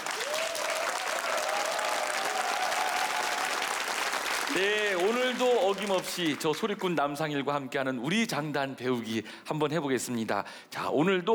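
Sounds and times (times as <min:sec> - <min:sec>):
studio audience applause: 0:00.0 - 0:06.9
speech: 0:04.6 - 0:11.3.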